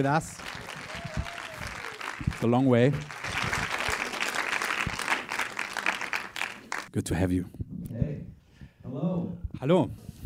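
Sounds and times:
speech: 0.0s - 0.7s, 2.4s - 3.2s, 6.9s - 7.6s, 9.6s - 10.0s
live audience applause welcoming a guest: 0.0s - 6.9s.

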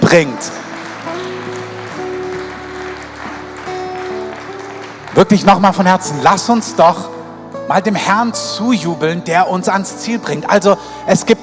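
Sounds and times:
audience applause: 0.0s - 8.0s
speech: 0.1s - 0.7s, 5.2s - 11.4s.

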